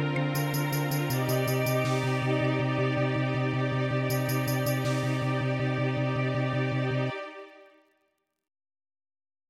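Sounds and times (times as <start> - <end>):
MIDI music: 0.0 - 7.1.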